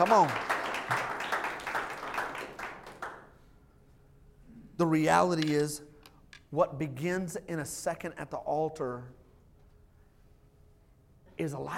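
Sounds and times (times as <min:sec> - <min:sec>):
speech: 0:00.0 - 0:01.1, 0:04.8 - 0:05.9, 0:06.5 - 0:09.2, 0:11.4 - 0:11.7
crowd clapping: 0:00.0 - 0:03.4.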